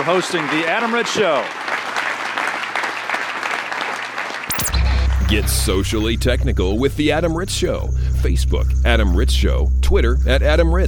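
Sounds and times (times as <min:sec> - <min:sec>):
speech: 0:00.0 - 0:01.7, 0:05.3 - 0:10.8
audience applause: 0:00.0 - 0:05.3
brief electronic swoosh: 0:04.5 - 0:10.8.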